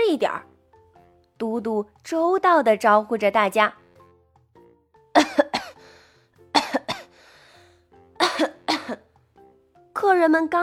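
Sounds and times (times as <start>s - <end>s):
speech: 0.1s - 0.5s, 1.4s - 3.8s, 10.0s - 10.6s
guests coughing: 5.2s - 5.8s, 6.6s - 7.1s, 8.2s - 9.0s.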